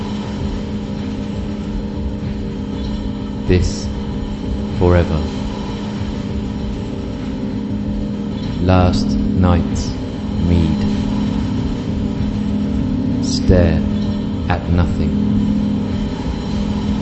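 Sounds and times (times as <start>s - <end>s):
train passing: 0.0s - 17.0s
speech: 3.5s - 4.0s, 4.8s - 5.4s, 8.6s - 10.8s, 13.5s - 13.9s, 14.5s - 15.8s.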